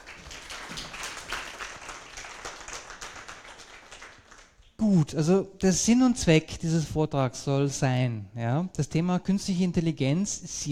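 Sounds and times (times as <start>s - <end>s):
audience applause: 0.0s - 4.6s
speech: 4.8s - 10.7s.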